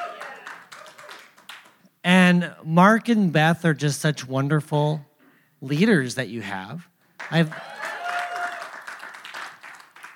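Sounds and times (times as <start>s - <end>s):
audience clapping: 0.0s - 1.8s, 7.2s - 10.1s
speech: 2.0s - 7.7s.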